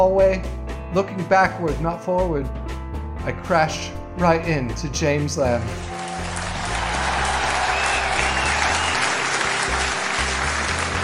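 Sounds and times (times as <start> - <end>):
speech: 0.0 - 6.0
loud eruption of audience applause from a large crowd: 5.8 - 11.0.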